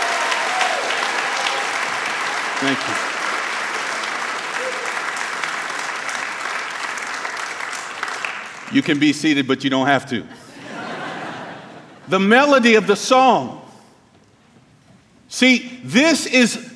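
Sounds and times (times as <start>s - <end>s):
audience hand clapping: 0.0s - 9.2s
speech: 2.6s - 3.1s, 8.7s - 10.4s, 12.1s - 13.6s, 15.3s - 16.7s
laughter: 10.2s - 12.3s.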